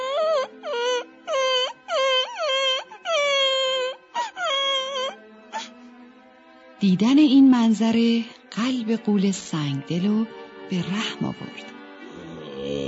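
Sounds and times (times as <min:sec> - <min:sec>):
young boy crying: 0:00.0 - 0:05.8
speech: 0:06.8 - 0:11.8.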